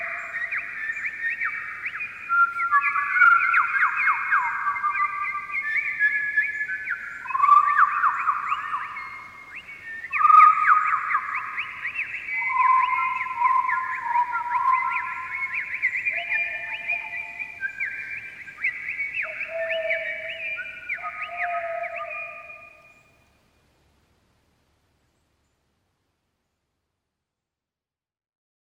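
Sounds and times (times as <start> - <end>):
birds singing: 0.0 - 23.2.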